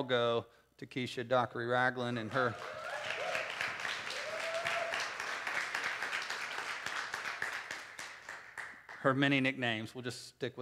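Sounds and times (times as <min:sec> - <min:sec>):
speech: 0:00.0 - 0:02.9, 0:09.0 - 0:10.5
audience applause: 0:02.2 - 0:09.0.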